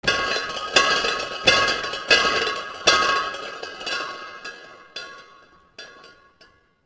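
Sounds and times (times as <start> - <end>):
bangs: 0.0 - 6.6.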